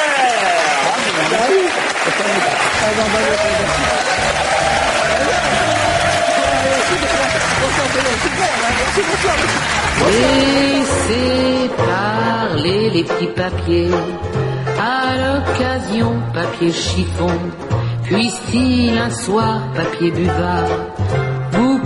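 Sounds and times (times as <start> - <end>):
audience applause for a singer at a tribute show: 0.0 - 11.0
speech: 1.3 - 5.5, 6.9 - 21.1.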